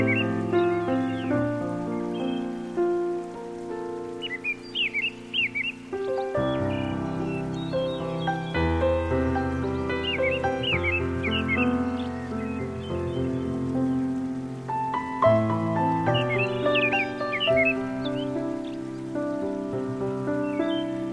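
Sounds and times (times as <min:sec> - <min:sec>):
forest nature sounds: 0:00.0 - 0:21.1
new age meditation piano music: 0:00.0 - 0:21.1.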